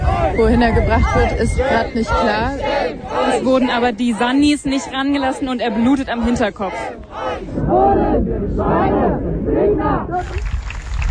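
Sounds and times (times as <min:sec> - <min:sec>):
speech: 0:00.4 - 0:10.5
protest crowd applause and cheering: 0:10.2 - 0:11.0.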